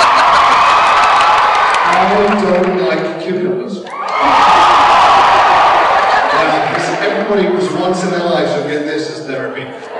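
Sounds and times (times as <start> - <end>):
laughter: 0.0 - 0.9, 4.2 - 5.2, 5.8 - 8.7, 9.6 - 9.9
audience applause: 0.0 - 3.0, 3.9 - 7.8
speech: 2.0 - 4.4, 7.3 - 9.9.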